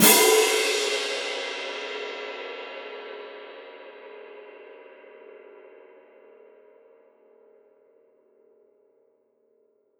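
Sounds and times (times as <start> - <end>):
cymbal: 0.0 - 7.6.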